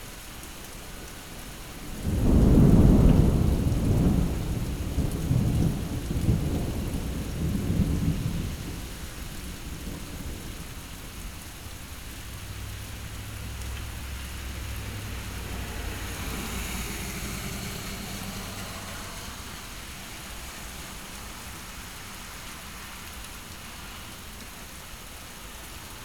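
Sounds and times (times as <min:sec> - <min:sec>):
thunderstorm: 0:01.8 - 0:22.0.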